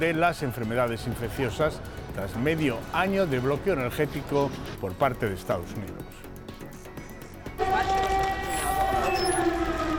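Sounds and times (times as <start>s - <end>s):
speech: 0.0s - 6.3s
air raid siren in Kyiv: 7.9s - 9.9s.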